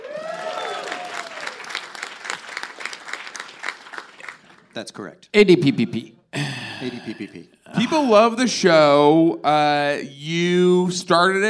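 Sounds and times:
applause: 0.0s - 4.8s
speech: 4.8s - 11.4s.

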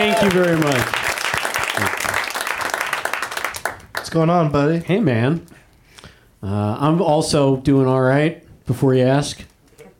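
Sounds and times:
speech: 0.0s - 1.0s, 4.1s - 5.6s, 6.4s - 9.5s
audience applause: 0.0s - 4.2s.

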